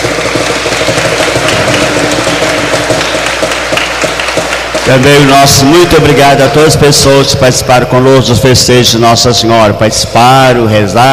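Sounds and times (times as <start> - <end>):
applause for the prize winners: 0.0 - 6.1
speech: 4.9 - 11.1.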